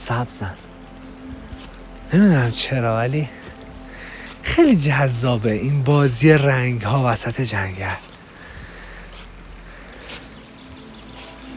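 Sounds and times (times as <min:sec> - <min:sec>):
speech: 0:00.0 - 0:00.7, 0:02.1 - 0:03.4, 0:04.4 - 0:08.1
leaves rustling underfoot: 0:00.0 - 0:11.5
river flowing: 0:00.0 - 0:11.5.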